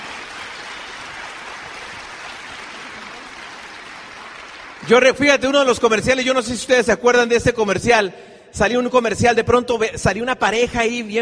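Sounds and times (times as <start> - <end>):
audience applause: 0.0 - 5.9
speech: 4.8 - 11.1.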